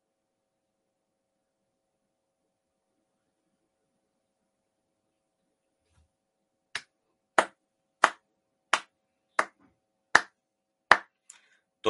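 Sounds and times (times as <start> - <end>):
man clapping for himself: 6.8 - 9.6, 10.2 - 11.2.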